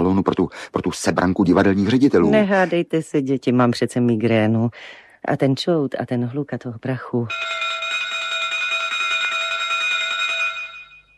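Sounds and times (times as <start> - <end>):
speech: 0.3 - 7.7
train platform departure bell ringing: 7.3 - 11.1.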